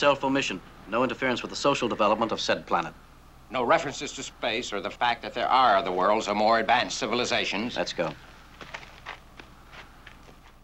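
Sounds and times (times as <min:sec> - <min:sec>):
speech: 0:00.0 - 0:08.3
boots walking on dusty gray earth: 0:06.7 - 0:10.6.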